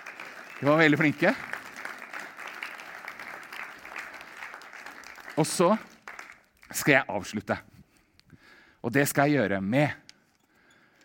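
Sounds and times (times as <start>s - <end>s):
audience applause: 0.0s - 6.5s
speech: 0.6s - 1.6s, 5.4s - 5.9s, 6.7s - 7.7s, 8.8s - 10.0s.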